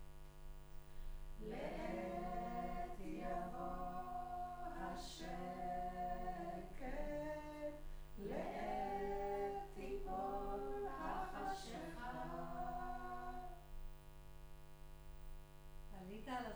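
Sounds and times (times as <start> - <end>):
choir singing in room: 1.4 - 13.6.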